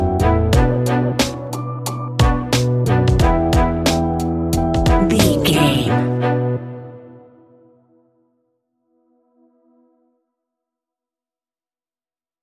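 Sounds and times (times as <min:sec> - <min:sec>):
west coast hip hop music: 0:00.2 - 0:06.4.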